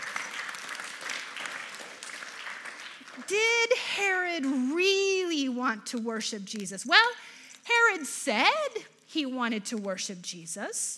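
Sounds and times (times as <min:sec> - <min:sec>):
audience applause: 0:00.0 - 0:03.3
speech: 0:03.2 - 0:07.3, 0:08.0 - 0:10.9.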